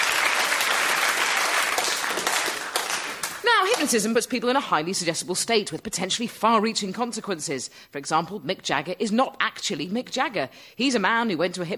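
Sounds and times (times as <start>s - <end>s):
audience applause: 0.0s - 3.8s
speech: 3.7s - 11.7s.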